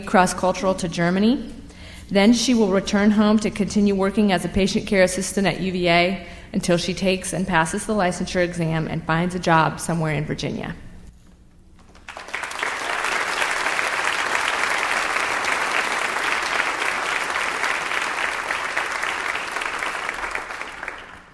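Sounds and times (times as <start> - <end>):
speech: 0.0 - 10.8
audience applause: 11.9 - 21.3.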